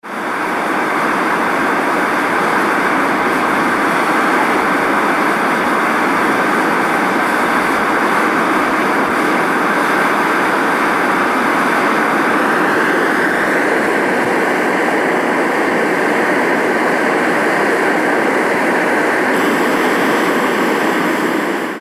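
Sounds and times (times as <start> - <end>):
smoking steam cone at Myvatn: 0.0 - 21.7.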